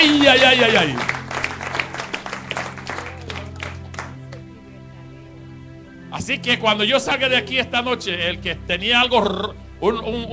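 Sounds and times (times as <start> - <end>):
audience applause: 0.0 - 4.4
speech: 0.3 - 1.2, 6.2 - 10.3.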